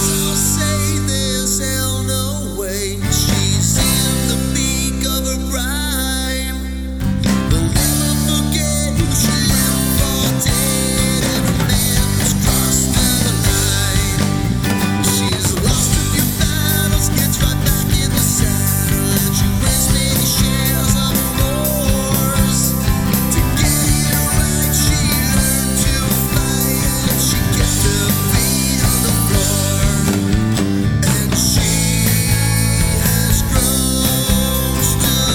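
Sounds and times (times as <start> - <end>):
karaoke singing in harmony: 0.0 - 35.3.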